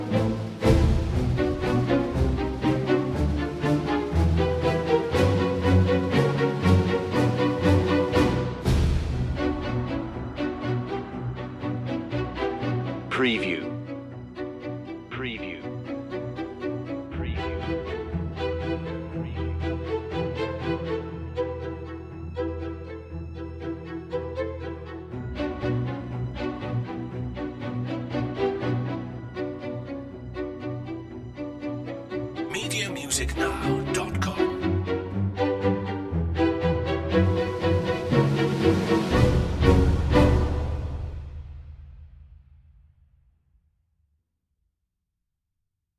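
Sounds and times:
orchestral soundtrack percussion: 0.0 - 12.8, 32.5 - 41.8
eerie mystery orchestral soundtrack strings: 0.0 - 41.7.

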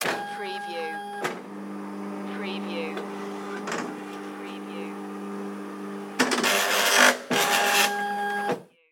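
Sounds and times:
Xerox photocopier copying: 0.0 - 8.6.

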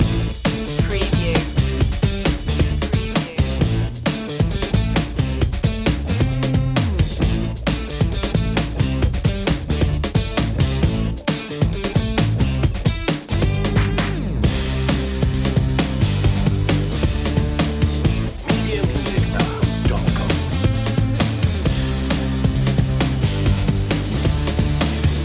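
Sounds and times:
fuzzy gritty skank loop: 0.0 - 25.2.

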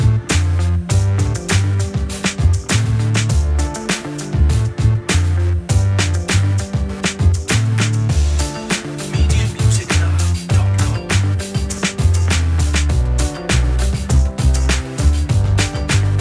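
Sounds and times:
groovy quirky hip hop music: 0.0 - 16.2.

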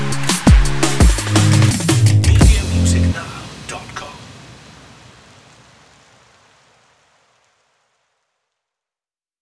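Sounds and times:
electronic music track: 0.0 - 4.1.

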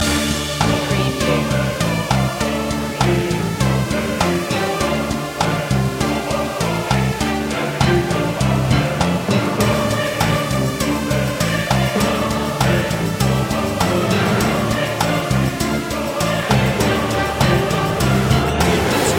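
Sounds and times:
spooky house music loop: 0.0 - 19.1.

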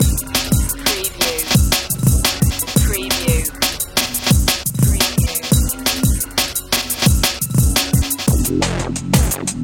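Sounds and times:
stimulation loop: 0.0 - 9.5.

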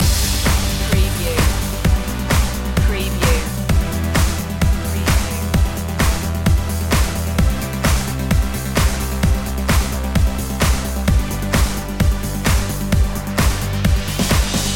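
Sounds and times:
positive energy music loop: 0.0 - 14.7.

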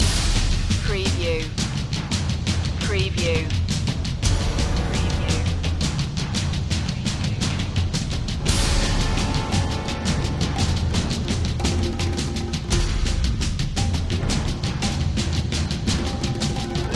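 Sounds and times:
percussion loop: 0.0 - 16.9.

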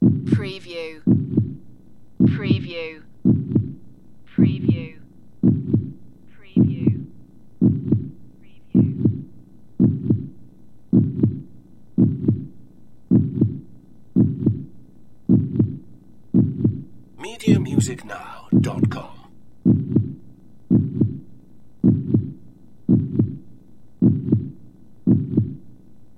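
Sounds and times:
heartbeat: 0.0 - 25.7.

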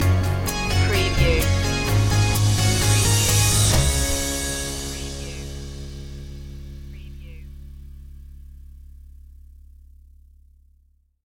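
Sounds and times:
hybrid throwback music stinger: 0.0 - 8.7.

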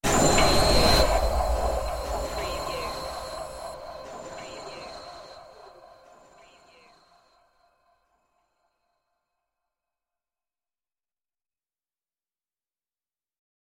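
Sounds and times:
sudden extraterrestrial appearance effect: 0.0 - 7.0.

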